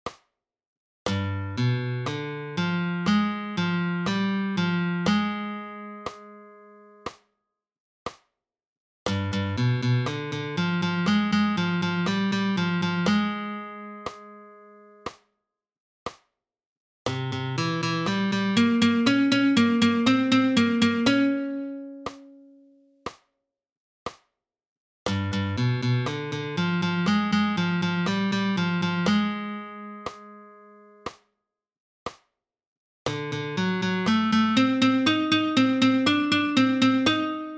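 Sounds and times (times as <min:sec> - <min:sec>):
flamenco guitar alzapua: 0:01.2 - 0:06.5, 0:09.2 - 0:14.3, 0:17.2 - 0:22.4, 0:25.3 - 0:30.5, 0:33.2 - 0:37.5.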